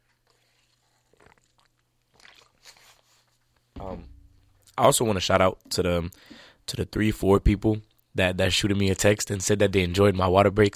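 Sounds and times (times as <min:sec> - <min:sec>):
person drinking water: 0:00.0 - 0:04.8, 0:06.1 - 0:06.6
speech: 0:04.8 - 0:10.7.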